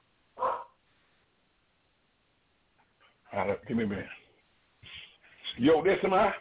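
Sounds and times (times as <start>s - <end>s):
dog barking: 0.4s - 0.8s
speech: 3.3s - 4.2s, 5.6s - 6.3s.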